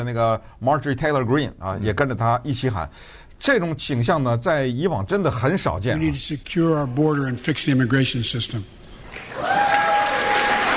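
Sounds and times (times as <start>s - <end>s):
speech: 0.0s - 8.8s
crowd clapping at a rally: 9.1s - 10.7s
crowd whistling at a rally: 9.3s - 10.7s.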